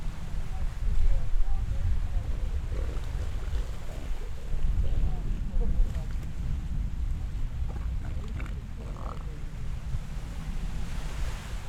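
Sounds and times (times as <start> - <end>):
seals mating: 0.1 - 11.5.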